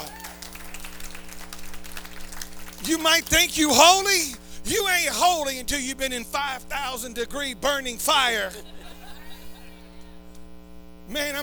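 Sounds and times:
audience clapping: 0.0 - 4.5
laughter: 2.8 - 5.3, 8.3 - 10.4
speech: 2.8 - 8.8, 11.1 - 11.4.

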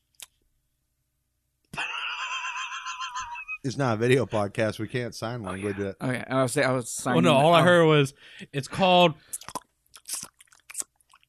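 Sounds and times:
laughter: 1.8 - 4.5
speech: 3.6 - 9.5
chewing candy: 9.3 - 11.2.

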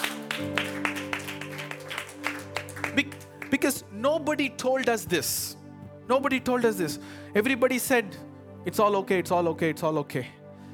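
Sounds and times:
audience clapping: 0.0 - 3.8
speech: 0.4 - 0.7, 3.0 - 10.4.

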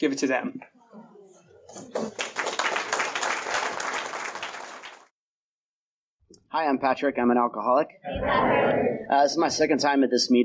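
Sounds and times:
speech: 0.0 - 0.8, 1.7 - 2.5, 6.5 - 10.4
audience applause: 1.9 - 5.1.

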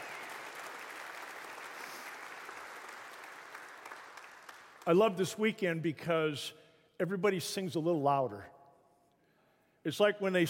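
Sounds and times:
audience applause: 0.0 - 4.8
speech: 4.9 - 8.6, 9.8 - 10.4.

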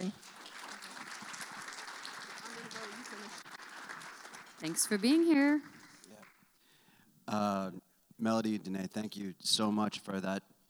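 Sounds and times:
audience applause: 0.0 - 6.6
speech: 3.1 - 3.6, 4.6 - 5.8, 7.3 - 10.5.

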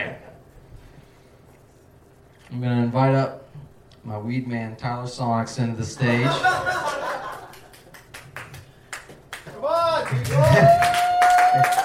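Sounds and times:
speech: 2.5 - 3.4, 4.0 - 6.8
laughter: 6.1 - 7.9, 10.0 - 11.0
round of applause: 7.3 - 11.8.

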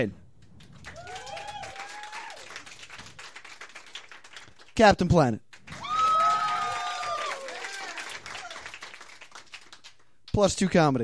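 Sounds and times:
speech: 0.0 - 0.2, 4.8 - 5.4, 10.4 - 11.0
audience clapping at a live comedy show: 0.4 - 10.7
audience whistle or cheer: 0.9 - 2.6, 5.7 - 8.6.

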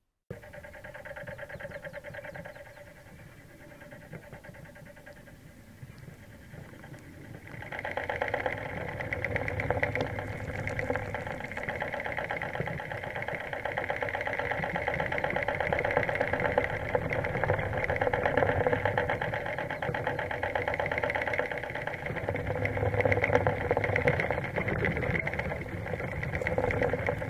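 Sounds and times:
cartoon rattly motor cranking: 7.3 - 27.2.

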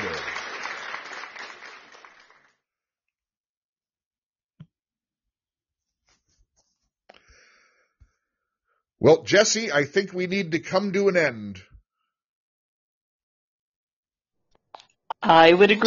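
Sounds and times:
group applause from participants: 0.0 - 2.6
speech: 9.0 - 11.7, 15.2 - 15.8.

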